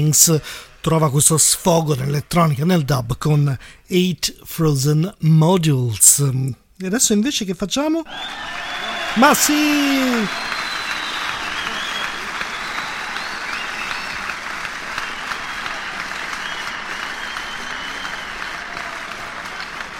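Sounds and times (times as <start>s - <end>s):
speech: 0.0s - 10.6s
large crowd applauding: 8.1s - 19.9s.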